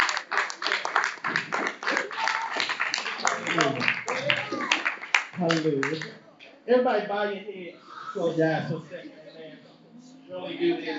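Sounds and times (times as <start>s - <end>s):
audience clapping hands: 0.0s - 6.2s
speech: 5.4s - 9.2s, 10.3s - 10.9s.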